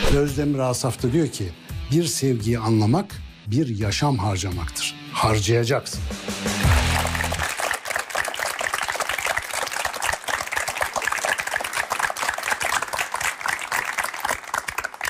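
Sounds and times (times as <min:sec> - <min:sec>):
speech: 0:00.1 - 0:06.6
crowd applauding: 0:06.5 - 0:15.0.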